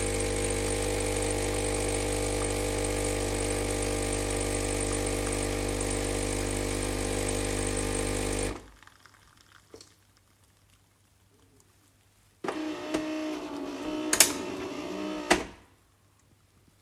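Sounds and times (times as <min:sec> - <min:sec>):
fully automatic coffee machine: 0:00.0 - 0:08.7, 0:12.4 - 0:15.6.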